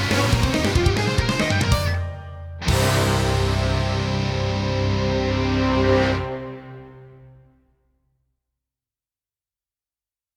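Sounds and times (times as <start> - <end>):
backing track: 0.0 - 7.6.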